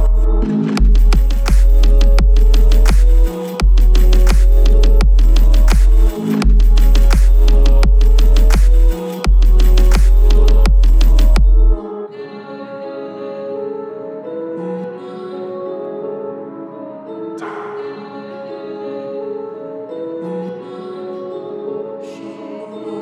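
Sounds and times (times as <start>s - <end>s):
41 Hz low bass tone: 0.0s - 11.8s.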